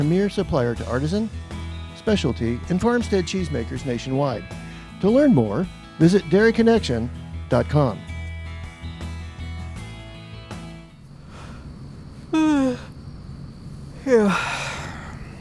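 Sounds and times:
speech: 0.0 - 8.1
person yawning sitting on a bench: 12.3 - 12.9.

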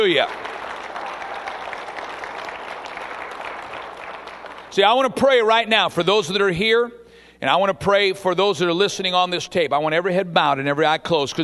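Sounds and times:
speech: 0.0 - 0.4, 4.8 - 11.4
audience clapping: 0.0 - 5.0.

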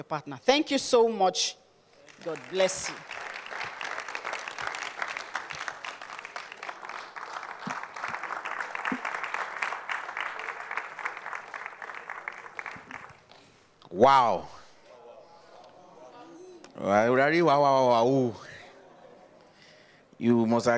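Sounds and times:
speech: 0.0 - 1.6, 2.2 - 3.2, 14.0 - 14.6, 16.8 - 18.4, 20.2 - 20.7
crowd clapping: 1.9 - 13.5.

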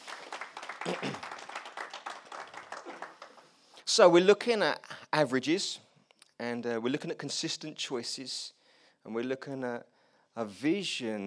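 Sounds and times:
audience applause for fathers: 0.0 - 3.5
speech: 4.0 - 5.8, 6.4 - 11.2.

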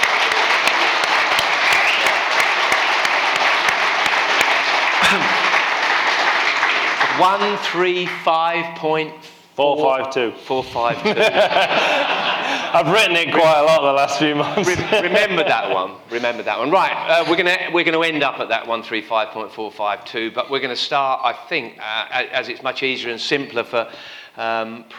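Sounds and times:
laughter: 0.0 - 6.3, 10.6 - 17.8
audience applause: 0.0 - 8.1
speech: 7.2 - 24.9.

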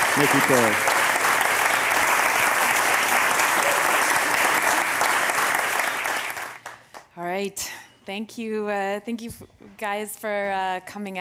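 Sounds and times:
audience applause: 0.0 - 6.8
speech: 0.2 - 0.9, 7.4 - 11.1.

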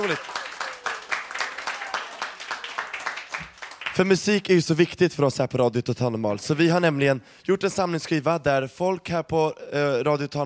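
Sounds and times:
small group clapping: 0.0 - 4.2
speech: 0.1 - 0.4, 4.0 - 10.4.

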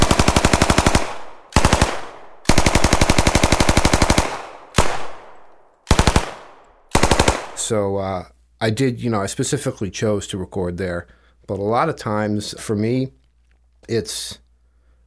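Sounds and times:
automatic gunfire in a city street: 0.0 - 7.7
speech: 7.7 - 13.2, 13.8 - 14.4.

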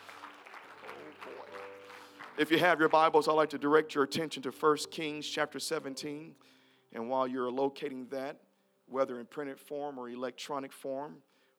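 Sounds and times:
audience clapping hands: 0.0 - 3.6
speech: 2.4 - 11.3.

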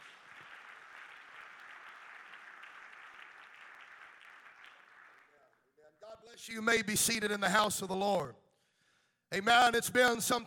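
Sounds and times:
audience clapping hands: 0.0 - 5.8
speech: 6.0 - 8.4, 9.3 - 10.4.

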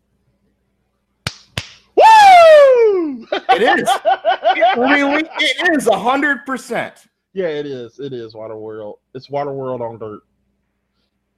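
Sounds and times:
hand clapping: 1.2 - 1.9
laughter: 3.2 - 6.0
speech: 3.6 - 10.3.

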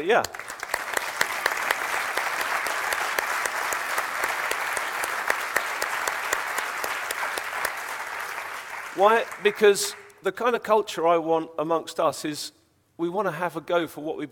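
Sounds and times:
speech: 0.0 - 0.4, 9.0 - 14.2
crowd applause: 0.2 - 10.1.

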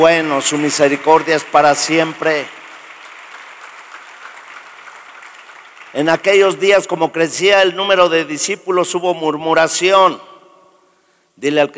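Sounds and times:
speech: 0.0 - 2.6, 6.0 - 10.3, 11.4 - 11.7
audience applauding: 0.0 - 6.6.

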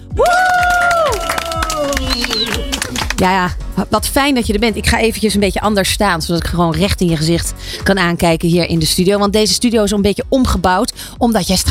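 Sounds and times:
studio audience clapping: 0.2 - 3.4
speech: 3.2 - 11.7.

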